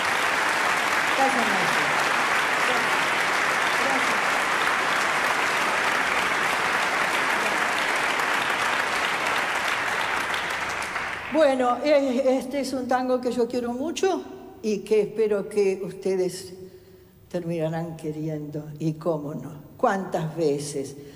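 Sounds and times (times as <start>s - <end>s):
audience applause: 0.0s - 11.6s
speech: 1.2s - 1.8s, 11.4s - 16.6s, 17.3s - 21.1s.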